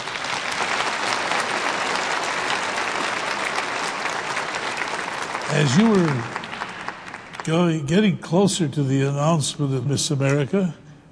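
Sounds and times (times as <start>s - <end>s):
audience applause in a church: 0.0s - 7.7s
speech: 5.5s - 6.4s, 7.4s - 10.8s.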